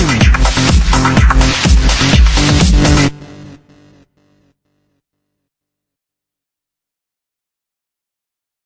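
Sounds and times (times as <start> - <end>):
electro house bassline: 0.0 - 4.4.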